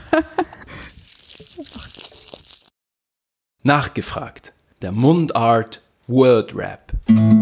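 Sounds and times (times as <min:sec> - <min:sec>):
speech: 0:00.1 - 0:00.6, 0:03.6 - 0:07.3
Lindt chocolate ball wrapper crinkling as it is unwrapped: 0:00.8 - 0:02.8.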